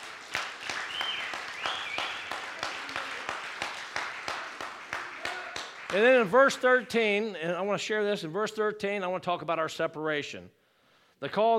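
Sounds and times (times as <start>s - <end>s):
crowd applauding in a large room: 0.0s - 6.8s
whistle or cheer: 0.6s - 3.3s
speech: 5.9s - 10.6s, 11.2s - 11.5s.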